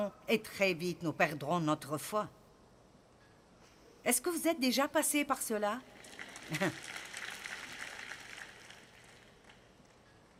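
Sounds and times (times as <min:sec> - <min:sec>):
speech: 0:00.0 - 0:02.4, 0:04.0 - 0:05.9, 0:06.5 - 0:06.9
weak audience applause: 0:06.0 - 0:10.0
laughter: 0:06.5 - 0:07.0.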